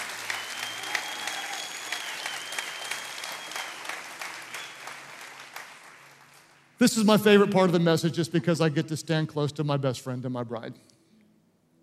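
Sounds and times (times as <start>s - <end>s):
audience clapping for a guest: 0.0s - 6.8s
speech: 6.8s - 10.9s.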